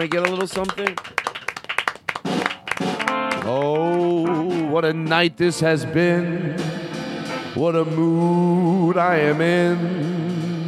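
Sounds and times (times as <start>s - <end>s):
speech: 0.0s - 1.4s, 3.5s - 6.8s, 7.6s - 10.5s
people clapping at a lively gathering: 0.0s - 4.4s.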